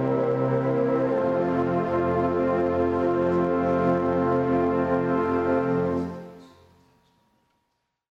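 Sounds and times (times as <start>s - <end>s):
wind ensemble playing: 0.0s - 6.5s.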